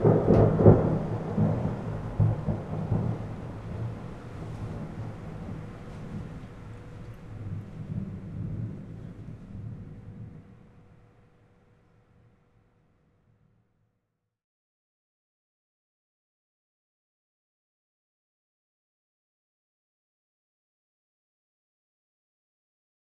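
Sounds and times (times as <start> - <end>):
thunder: 0.0 - 10.9.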